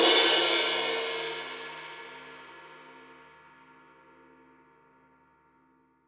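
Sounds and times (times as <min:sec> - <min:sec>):
raw acoustic drum kit: 0:00.0 - 0:02.8.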